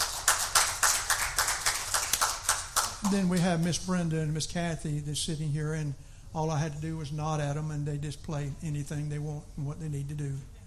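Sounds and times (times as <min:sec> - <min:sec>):
audience clapping: 0:00.0 - 0:03.8
speech: 0:03.0 - 0:10.5.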